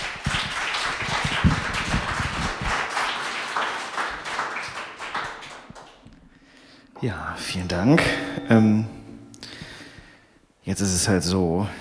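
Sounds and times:
audience applause: 0:00.0 - 0:06.1
speech: 0:07.0 - 0:09.0, 0:10.7 - 0:11.7.

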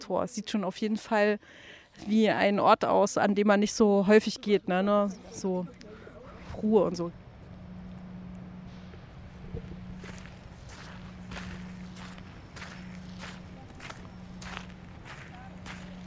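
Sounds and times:
speech: 0:00.1 - 0:05.8, 0:06.6 - 0:07.2
low constant hum: 0:00.2 - 0:16.0
footsteps of people walking outdoors through an industrial area: 0:09.6 - 0:16.0.

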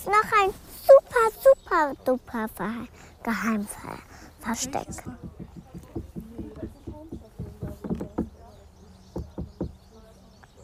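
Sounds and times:
people's voices murmuring: 0:00.0 - 0:10.6
speech: 0:00.1 - 0:00.6, 0:01.8 - 0:05.4
people knocking on a hard stone surface: 0:04.6 - 0:08.5, 0:09.1 - 0:09.8.

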